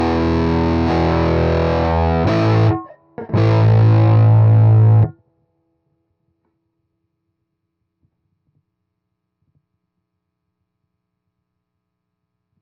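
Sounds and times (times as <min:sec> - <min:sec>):
heavy electric guitar: 0:00.0 - 0:05.1.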